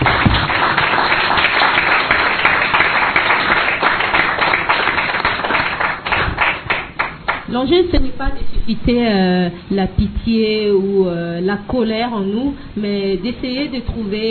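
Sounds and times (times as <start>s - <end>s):
audience applause: 0.0s - 7.5s
speech: 7.6s - 14.3s.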